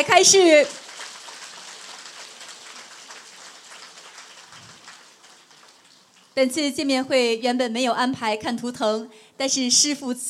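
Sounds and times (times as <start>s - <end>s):
speech: 0.0s - 0.8s, 6.4s - 10.2s
audience applause: 0.7s - 6.3s.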